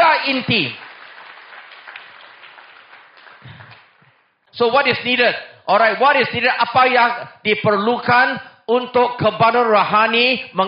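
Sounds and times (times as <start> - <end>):
audience applause: 0.0 - 4.3
speech: 0.3 - 0.8, 4.6 - 10.6.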